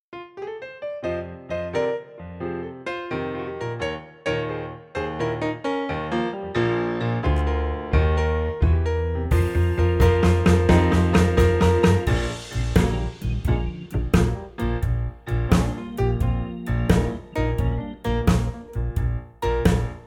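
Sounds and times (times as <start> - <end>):
blues music: 0.3 - 20.0.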